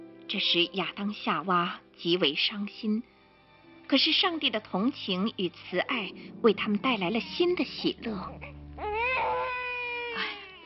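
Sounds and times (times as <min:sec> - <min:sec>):
speech: 0:00.3 - 0:03.1, 0:03.9 - 0:08.5
newborn baby boy crying: 0:07.3 - 0:10.6.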